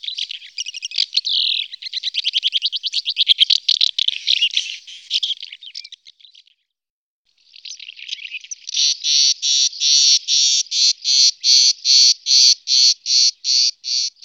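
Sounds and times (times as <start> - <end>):
house martin calling: 0.0 - 5.9, 8.8 - 14.2.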